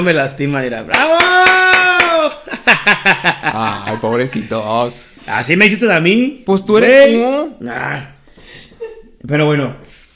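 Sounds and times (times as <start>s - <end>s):
speech: 0.0s - 8.1s, 9.2s - 9.9s
hands clapping: 0.9s - 2.4s
laughter: 2.1s - 4.9s.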